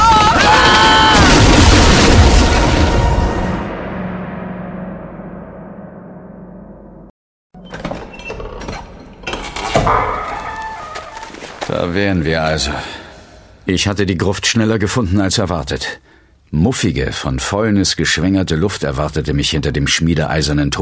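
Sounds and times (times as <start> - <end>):
burning wooden hut's beams collapsing: 0.0 - 3.7, 9.3 - 12.1
clattering, cracking debris from burning beams tumbling down: 8.8 - 11.8
speech: 11.9 - 13.0, 13.6 - 20.7.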